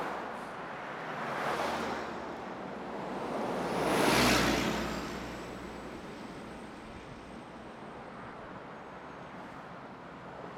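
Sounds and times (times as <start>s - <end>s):
car passing on a highway: 0.0s - 7.2s.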